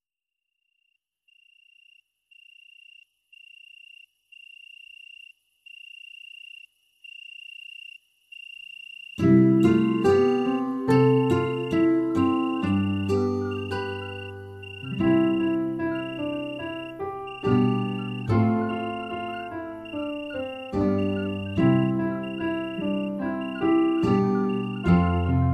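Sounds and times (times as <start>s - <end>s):
instrumental music: 9.2s - 25.5s.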